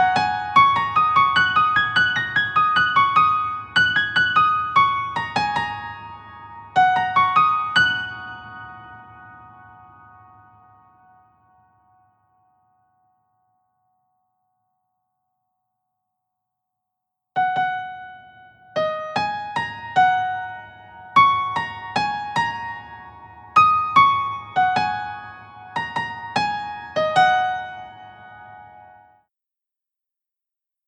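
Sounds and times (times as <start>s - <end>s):
scenic piano music: 0.0s - 11.2s, 17.4s - 29.0s.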